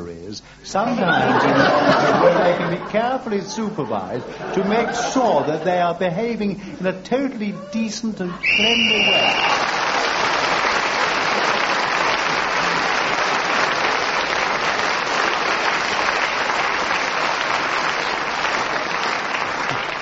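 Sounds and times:
speech: 0.3s - 9.7s
laughter: 0.8s - 6.9s
large audience loud applause: 8.4s - 19.9s.

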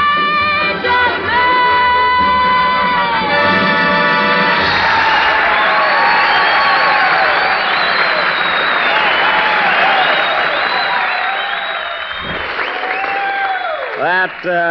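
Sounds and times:
audience applause and cheering: 0.2s - 14.6s
whoops and whistles: 4.6s - 13.9s.

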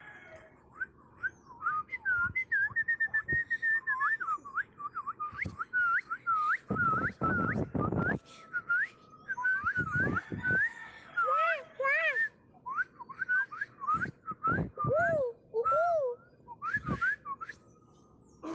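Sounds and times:
small birds: 0.0s - 18.5s.

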